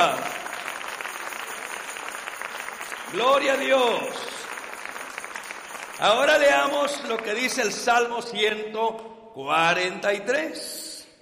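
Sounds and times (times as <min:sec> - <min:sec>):
church congregation applauding in praise: 0:00.0 - 0:07.9
speech: 0:03.1 - 0:04.4, 0:06.0 - 0:10.8.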